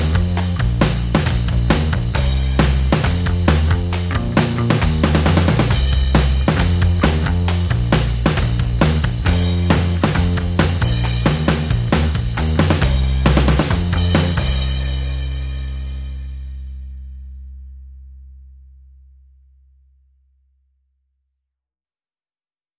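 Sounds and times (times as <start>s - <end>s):
drums: 0.0s - 17.0s
bass: 0.0s - 21.6s.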